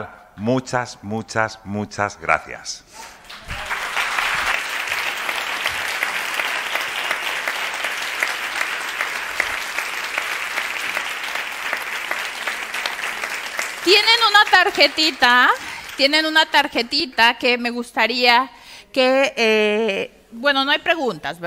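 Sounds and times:
speech: 0.0s - 3.6s, 13.8s - 21.4s
audience applause: 3.2s - 16.2s.

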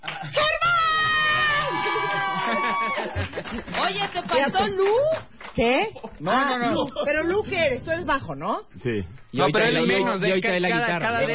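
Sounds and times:
crowd cheering and shouting: 0.4s - 3.2s
laughter: 1.4s - 5.1s
speech: 3.5s - 11.3s.

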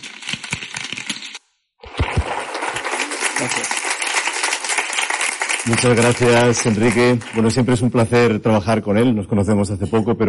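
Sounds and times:
audience applause: 1.8s - 7.9s
speech: 5.6s - 10.2s.

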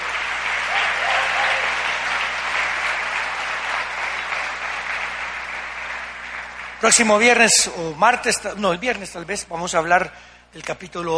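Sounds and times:
audience applause: 0.0s - 7.6s
speech: 6.8s - 11.1s.

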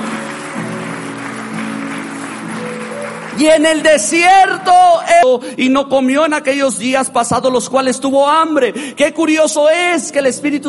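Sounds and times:
audience applauding: 0.0s - 5.0s
speech: 3.4s - 10.6s.

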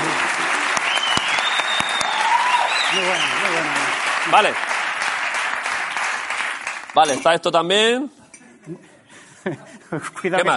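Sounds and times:
audience applause: 0.0s - 7.1s
speech: 3.0s - 4.7s, 7.0s - 10.5s.

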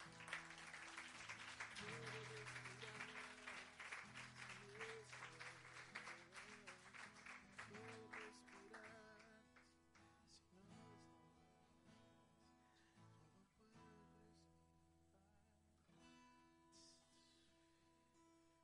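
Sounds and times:
audience applauding: 0.0s - 9.3s.

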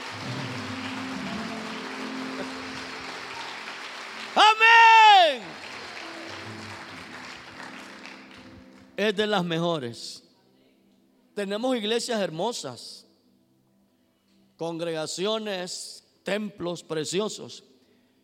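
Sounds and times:
audience applause: 0.0s - 8.9s
speech: 9.0s - 10.2s, 11.4s - 13.0s, 14.6s - 17.7s.

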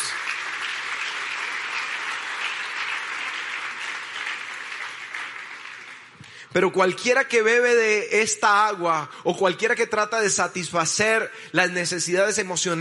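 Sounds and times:
audience applauding: 0.0s - 6.3s
speech: 6.5s - 12.7s.

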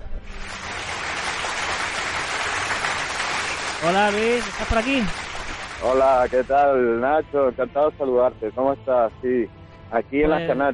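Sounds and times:
audience applause: 0.2s - 6.5s
speech: 3.8s - 5.2s, 5.8s - 10.7s.

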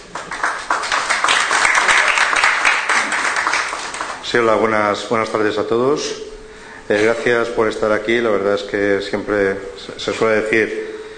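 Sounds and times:
audience applause: 0.0s - 4.2s
speech: 4.3s - 6.3s, 6.9s - 10.8s.

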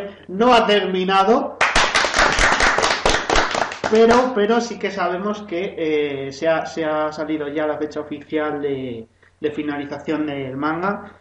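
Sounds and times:
speech: 0.1s - 1.6s, 3.9s - 11.1s
crowd applause: 1.6s - 4.2s.

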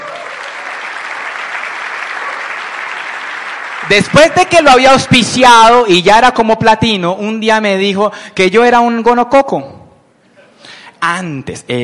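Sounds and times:
audience clapping: 0.0s - 5.1s
speech: 3.9s - 9.8s, 11.0s - 11.8s.

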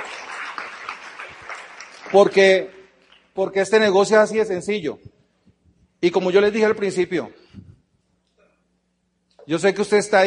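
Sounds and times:
audience applause: 0.0s - 3.3s
speech: 2.1s - 2.8s, 3.4s - 5.1s, 6.0s - 7.4s, 9.5s - 10.2s.

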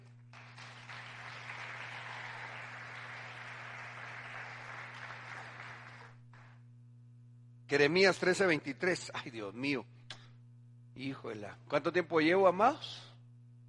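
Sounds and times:
audience clapping: 0.0s - 6.6s
speech: 7.7s - 10.0s, 11.0s - 13.1s.

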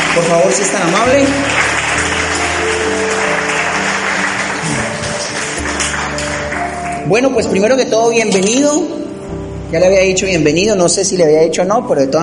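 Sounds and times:
crowd applauding: 0.0s - 7.6s
speech: 0.2s - 2.2s, 7.1s - 9.0s, 9.7s - 12.2s.

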